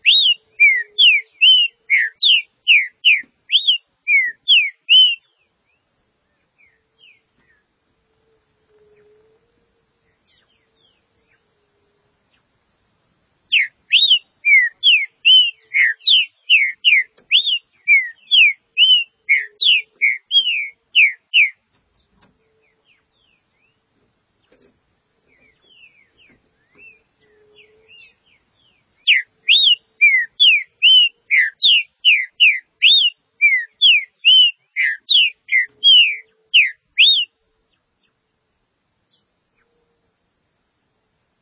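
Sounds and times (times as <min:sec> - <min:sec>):
green-winged saltator song: 0:00.0 - 0:07.7, 0:13.5 - 0:21.6, 0:25.3 - 0:37.4.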